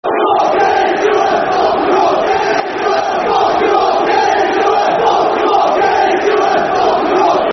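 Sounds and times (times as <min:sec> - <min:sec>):
football crowd chanting: 0:00.0 - 0:07.5.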